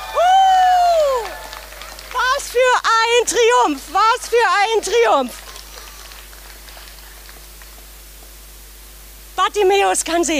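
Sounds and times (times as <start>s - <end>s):
high-pitched cheer: 0.0s - 5.9s
speech: 3.2s - 5.4s, 9.5s - 10.3s.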